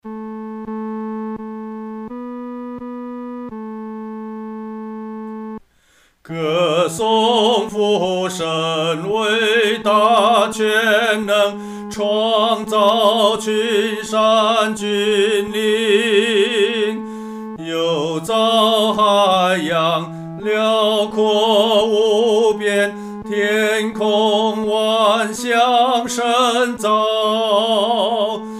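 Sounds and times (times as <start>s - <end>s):
solo singing third voice: 6.3s - 28.5s.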